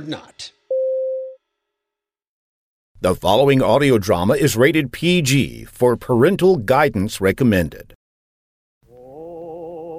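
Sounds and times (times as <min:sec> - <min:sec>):
speech: 0:00.0 - 0:00.6, 0:03.0 - 0:08.0
time signal tone: 0:00.7 - 0:01.4.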